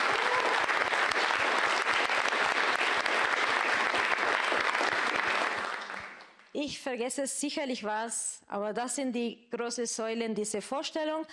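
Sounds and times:
audience applause: 0.0s - 6.4s
speech: 6.6s - 11.3s.

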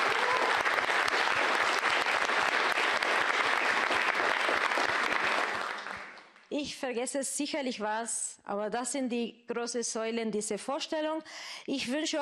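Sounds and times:
audience applause: 0.0s - 6.4s
speech: 6.6s - 12.2s.

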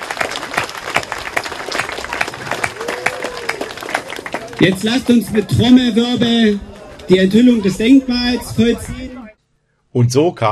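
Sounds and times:
applause: 0.0s - 7.2s
speech: 4.6s - 9.2s, 9.9s - 10.4s.

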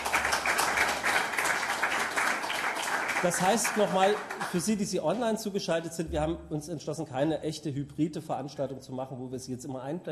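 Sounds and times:
audience applause: 0.0s - 4.8s
speech: 3.2s - 10.1s.

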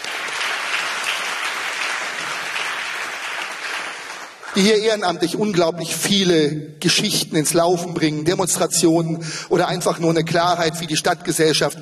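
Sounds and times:
audience applause: 0.0s - 4.7s
speech: 4.6s - 11.7s.

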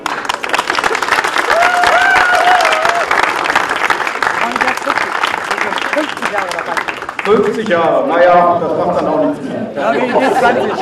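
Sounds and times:
crowd applauding: 0.0s - 8.2s
faint voice or cheer: 1.4s - 3.3s
speech: 7.3s - 10.8s
laughter: 8.0s - 10.8s.

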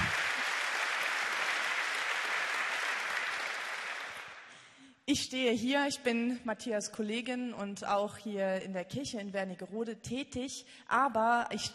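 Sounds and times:
audience applause: 0.0s - 4.6s
speech: 5.1s - 11.7s.

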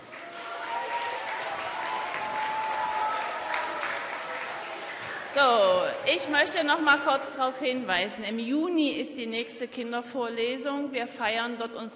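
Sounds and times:
audience applause: 0.0s - 6.6s
speech: 5.4s - 11.9s.

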